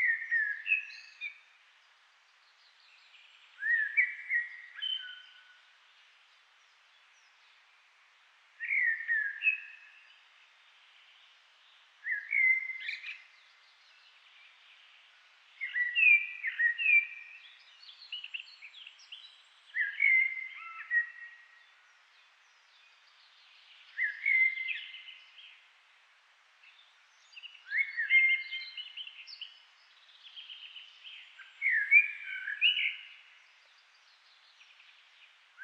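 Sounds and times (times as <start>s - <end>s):
Eurasian blackbird song: 0.0s - 1.4s, 2.7s - 5.6s, 8.6s - 10.1s, 12.0s - 14.5s, 15.6s - 21.9s, 22.5s - 25.6s, 26.7s - 35.6s.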